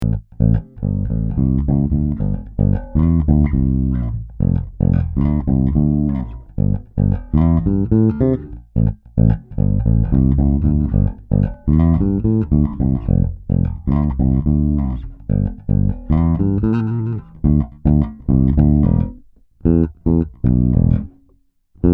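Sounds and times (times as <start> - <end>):
passive bass: 0.0 - 21.9.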